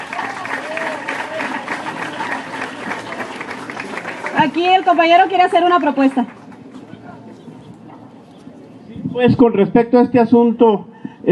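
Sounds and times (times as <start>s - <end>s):
audience applause: 0.0s - 6.7s
faint voices murmuring: 0.0s - 9.2s
speech: 4.4s - 6.4s, 9.2s - 11.3s.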